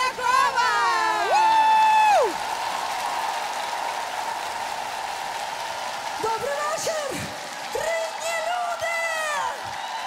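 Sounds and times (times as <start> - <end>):
audience applause: 0.0 - 10.0
loud sustained whoop: 0.9 - 3.8.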